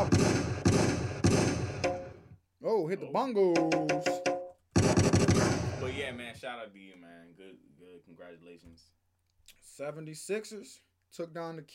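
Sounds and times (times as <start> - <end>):
gunshot sound effects: 0.0 - 2.2, 4.8 - 6.3
speech: 2.8 - 4.3, 5.8 - 9.0, 9.6 - 11.7.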